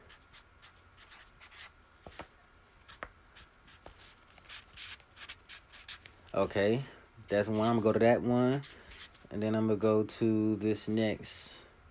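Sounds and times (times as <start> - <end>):
pen scratching on paper writing a list by hand: 0.0 - 2.2, 2.8 - 6.1, 7.4 - 7.9, 8.5 - 9.2
speech: 6.4 - 8.7, 9.3 - 11.5.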